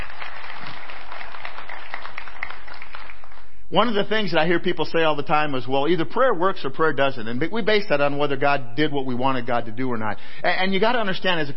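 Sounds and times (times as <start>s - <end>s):
audience clapping: 0.0s - 3.6s
speech: 3.7s - 11.5s.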